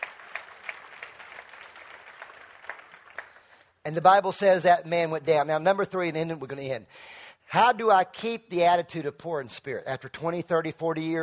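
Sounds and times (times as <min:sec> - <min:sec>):
audience clapping: 0:00.0 - 0:03.8
speech: 0:03.9 - 0:11.2.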